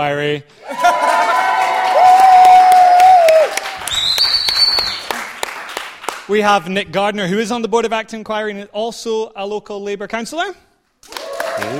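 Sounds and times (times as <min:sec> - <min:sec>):
speech: 0:00.0 - 0:00.8, 0:06.3 - 0:10.7, 0:11.6 - 0:11.7
long whistled whoops: 0:00.6 - 0:05.2
live audience applauding at a community event: 0:00.6 - 0:06.3, 0:11.0 - 0:11.7.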